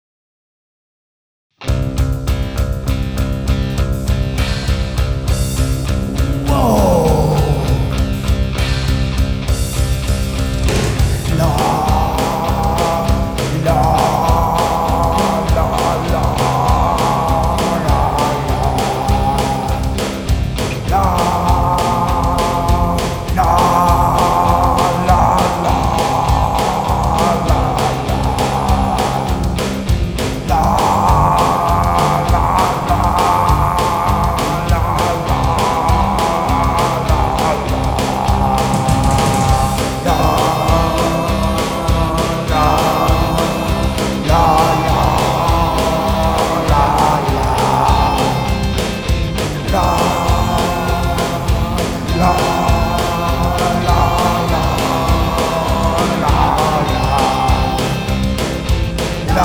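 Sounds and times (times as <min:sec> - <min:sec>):
punk hard rock film music: 0:01.6 - 0:59.4.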